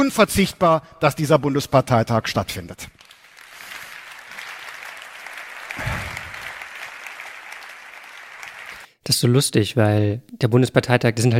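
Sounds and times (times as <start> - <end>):
speech: 0.0 - 3.0, 9.1 - 11.3
sparse applause from a small audience: 3.0 - 8.9.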